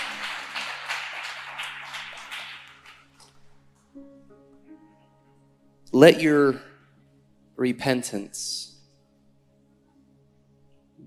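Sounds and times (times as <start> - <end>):
audience clapping: 0.0 - 3.5
soft melody: 3.0 - 8.8
low sustained musical tone: 3.1 - 11.0
speech: 6.0 - 6.7, 7.6 - 8.7.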